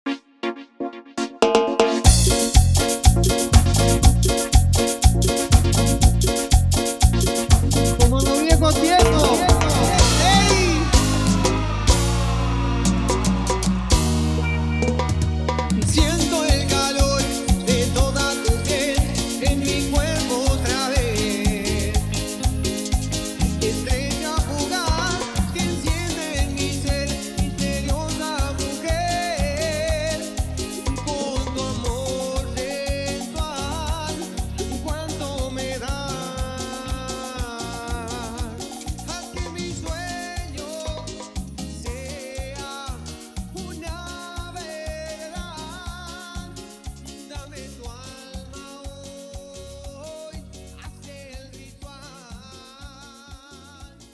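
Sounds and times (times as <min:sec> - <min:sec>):
live clean intro music: 0:00.4 - 0:36.3.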